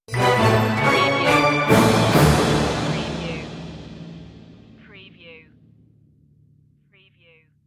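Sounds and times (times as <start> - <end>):
Christmas orchestral stinger: 0.1 - 4.8.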